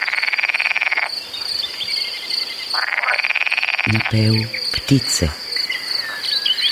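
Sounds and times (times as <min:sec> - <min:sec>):
frog croaking: 0:00.0 - 0:01.2, 0:02.7 - 0:05.6
speech: 0:03.9 - 0:05.4.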